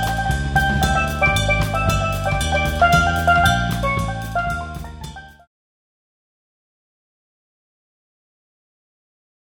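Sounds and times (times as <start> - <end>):
bass drum trio: 0.0 - 5.5.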